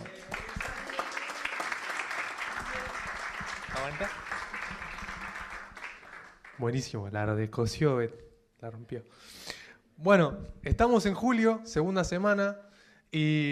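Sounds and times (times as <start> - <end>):
audience applause: 0.0 - 6.9
speech: 3.8 - 4.3, 6.6 - 9.4, 10.0 - 13.5.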